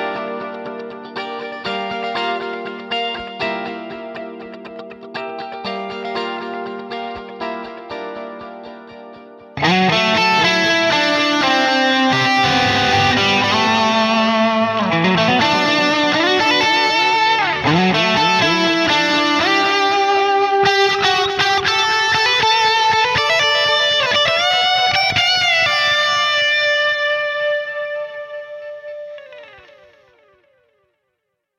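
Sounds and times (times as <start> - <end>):
guitar with ripple effect: 0.0 - 31.3.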